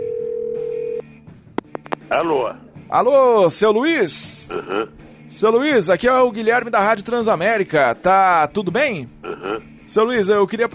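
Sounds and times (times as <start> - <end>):
telephone ringback tone: 0.0 - 1.0
speech: 2.1 - 10.7.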